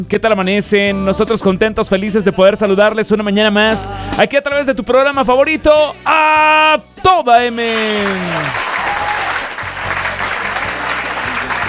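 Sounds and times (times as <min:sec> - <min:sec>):
speech: 0:00.0 - 0:08.7
applause: 0:07.6 - 0:11.6.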